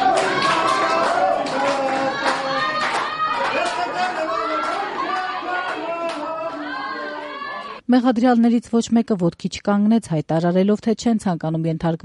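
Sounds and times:
scattered clapping in a courtroom greeting the defendants: 0:00.0 - 0:07.5
speech: 0:07.9 - 0:12.0.

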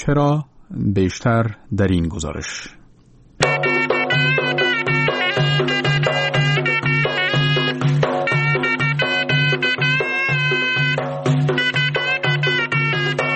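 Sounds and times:
speech: 0:00.0 - 0:02.8
drum beats: 0:03.4 - 0:13.3
sorna traditional Afghan wind instrument from Faryab played: 0:03.4 - 0:13.3.

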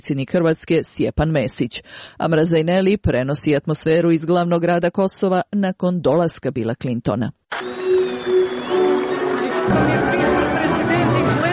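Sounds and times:
speech: 0:00.0 - 0:07.8
crowd in Pristina applauding and chanting: 0:07.6 - 0:11.5.

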